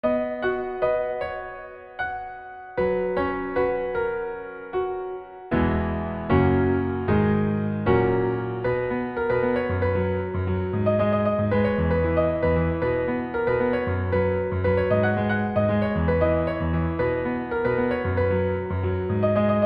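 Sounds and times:
piano: 0.0s - 19.6s.

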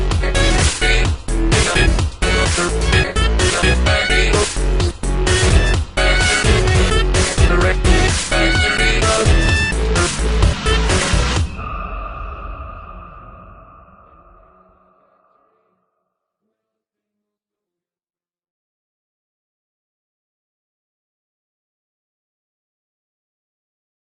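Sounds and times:
electro music: 0.0s - 12.4s.

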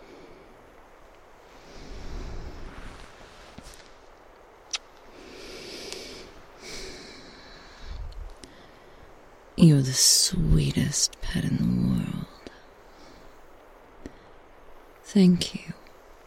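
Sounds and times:
person breathing: 0.0s - 0.7s, 1.4s - 3.8s, 5.1s - 9.2s, 12.5s - 14.5s
speech: 9.6s - 12.4s, 15.1s - 15.8s.

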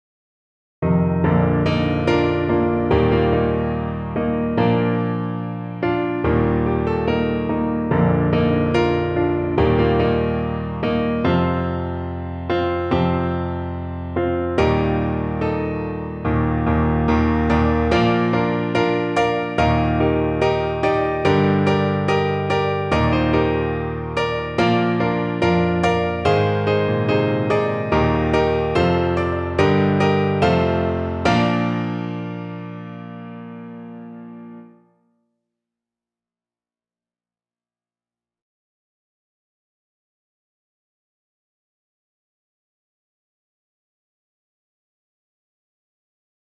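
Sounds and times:
piano: 0.8s - 35.0s.

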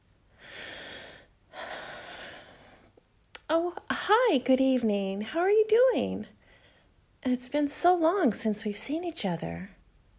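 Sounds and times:
person taking a deep breath: 0.3s - 3.0s, 6.4s - 7.0s
speech: 3.5s - 6.4s, 7.2s - 9.8s.

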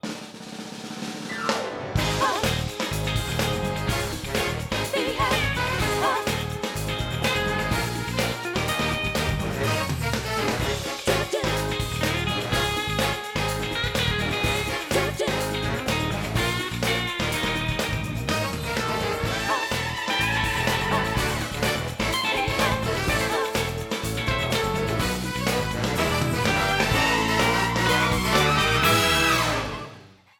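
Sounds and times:
instrumental music: 1.3s - 30.0s.

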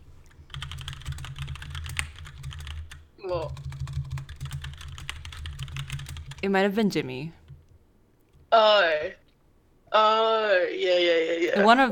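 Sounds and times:
rapid typing on a computer keyboard: 0.5s - 6.5s
speech: 3.2s - 3.7s, 6.4s - 7.4s, 8.5s - 9.2s, 9.9s - 11.9s.

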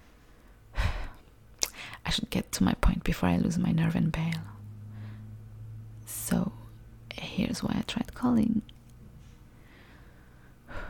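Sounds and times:
speech: 2.1s - 4.6s, 6.3s - 6.6s, 7.4s - 8.7s
deep breath drawn in before speaking on a late-night voicemail: 4.8s - 5.4s, 9.5s - 10.8s.

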